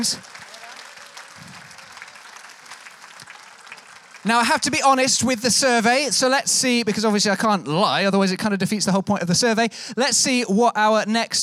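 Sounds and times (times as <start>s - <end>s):
speech: 0.0s - 0.4s, 4.2s - 11.4s
audience applause for game show contestants: 0.0s - 5.4s.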